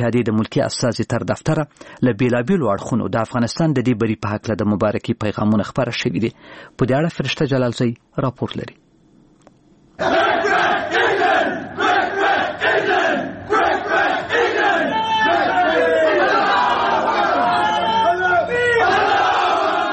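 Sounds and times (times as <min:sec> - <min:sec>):
speech: 0:00.0 - 0:08.8, 0:10.0 - 0:10.5
cricket team players chanting in their room after a win: 0:10.0 - 0:19.9
cricket players shouting and whooping: 0:13.5 - 0:19.9.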